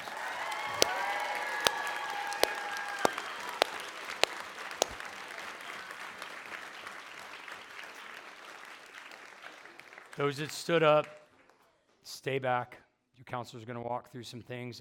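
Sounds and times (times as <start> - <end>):
whoops: 0.0 - 5.0
audience applauding and cheering: 0.0 - 10.5
speech: 10.2 - 11.2, 12.2 - 14.8.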